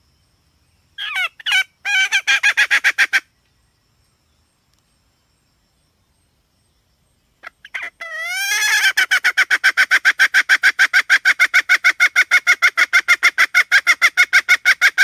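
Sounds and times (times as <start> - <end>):
red junglefowl hen clucking and squawking: 1.0 - 3.2, 7.4 - 15.0.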